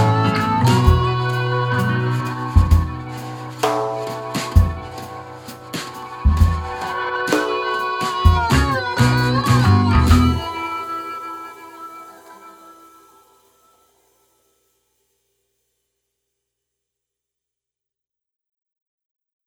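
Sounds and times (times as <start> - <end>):
blues music: 0.0 - 13.5.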